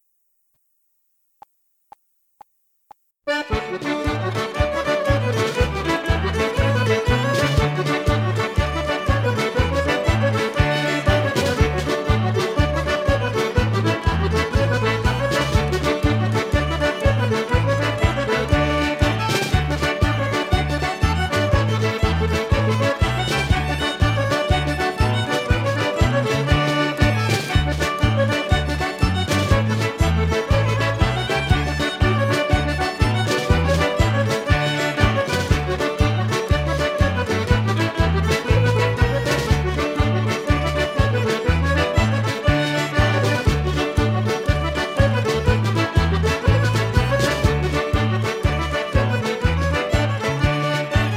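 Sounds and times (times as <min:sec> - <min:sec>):
Irish ceili jigs backing track in D: 0:02.9 - 0:51.1.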